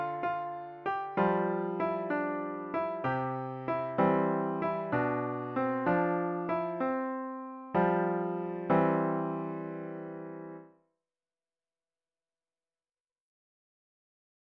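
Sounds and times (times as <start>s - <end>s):
Christmas carol played on piano: 0.0s - 10.8s.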